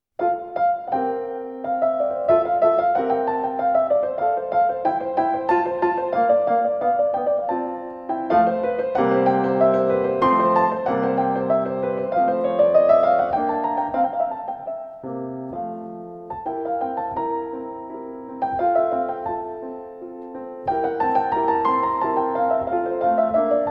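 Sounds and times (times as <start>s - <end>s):
polonaise in F on piano: 0.1s - 23.7s.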